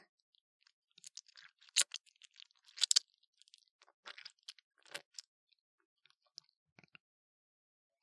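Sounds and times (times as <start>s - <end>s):
ear licking sounds: 1.0s - 5.3s.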